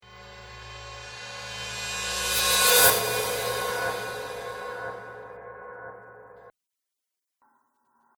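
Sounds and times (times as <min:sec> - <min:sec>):
reverse cymbal whoosh: 0:00.0 - 0:06.5.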